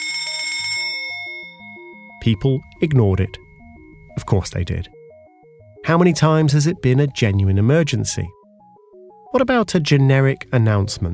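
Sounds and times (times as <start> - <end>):
fire alarm bell ringing: 0.0 - 6.4
speech: 2.2 - 3.4, 4.2 - 5.0, 5.8 - 8.4, 9.3 - 11.1.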